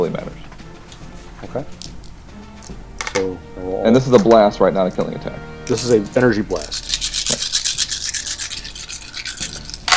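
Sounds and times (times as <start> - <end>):
speech: 0.0 - 0.4, 1.5 - 1.8, 3.8 - 7.1
handful of dice rattling and clattering: 6.7 - 9.9.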